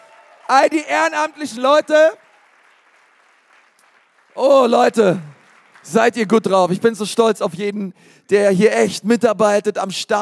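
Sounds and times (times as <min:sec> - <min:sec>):
crowd applause: 0:00.0 - 0:06.8
speech: 0:00.5 - 0:02.2, 0:04.4 - 0:10.2.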